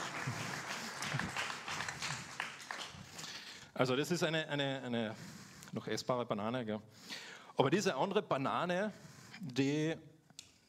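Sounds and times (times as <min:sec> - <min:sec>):
audience applause: 0:00.0 - 0:03.5
speech: 0:03.8 - 0:10.1.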